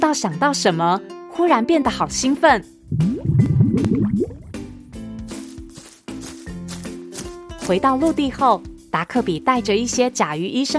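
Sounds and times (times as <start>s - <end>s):
speech: 0.0s - 4.3s, 7.7s - 10.7s
water filling a large wooden tub: 2.9s - 4.7s.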